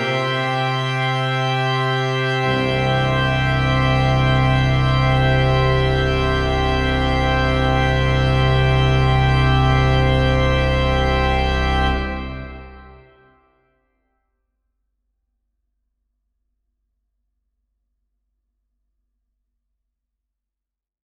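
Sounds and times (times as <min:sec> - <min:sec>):
organist playing a postlude: 0:00.0 - 0:13.3.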